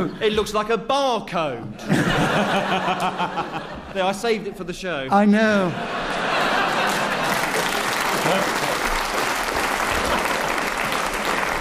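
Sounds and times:
speech: 0.0 - 6.0, 8.3 - 8.6
laughter: 1.8 - 4.2, 5.2 - 9.0, 9.8 - 11.3
audience applause: 6.0 - 11.5.

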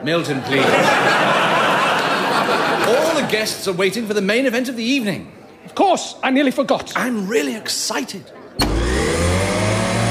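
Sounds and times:
speech: 0.0 - 1.7, 2.4 - 8.7
laughter: 0.3 - 3.6
coffee machine turning on: 8.6 - 10.0.

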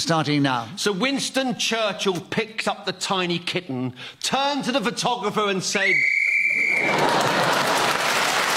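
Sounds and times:
speech: 0.0 - 6.2
game show whistle blown: 5.8 - 7.0
laughter: 6.6 - 8.4.

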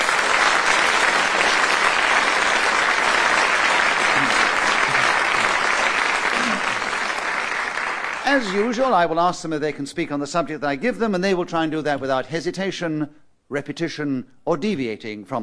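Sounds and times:
studio audience applause welcoming Just a Minute panellists: 0.0 - 9.0
speech: 8.3 - 15.4.

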